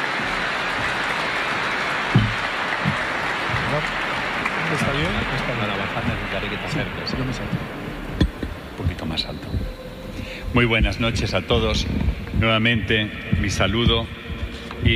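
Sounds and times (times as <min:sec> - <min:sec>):
audience applause: 0:00.0 - 0:09.2
speech: 0:04.9 - 0:07.8, 0:10.5 - 0:14.2.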